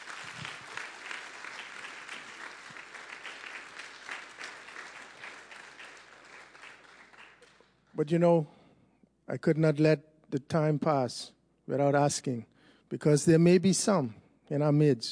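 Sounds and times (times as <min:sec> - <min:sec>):
crowd round of applause: 0:00.0 - 0:07.7
speech: 0:08.0 - 0:08.6, 0:09.3 - 0:15.1.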